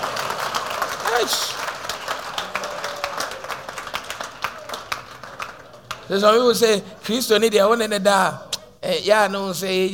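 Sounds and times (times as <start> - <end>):
audience clapping: 0.0 - 6.8
speech: 1.2 - 1.6, 6.1 - 9.9.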